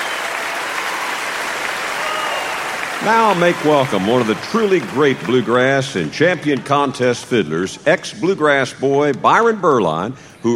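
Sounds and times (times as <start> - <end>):
audience applause at a live bluegrass concert: 0.0 - 6.2
speech: 3.0 - 10.5.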